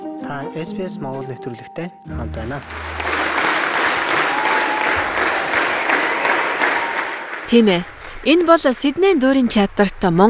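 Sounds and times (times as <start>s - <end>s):
speech: 0.3s - 3.1s, 7.5s - 10.2s
audience applause in a Sydney theatre after a Mongolian morin khuur concert: 2.2s - 8.0s.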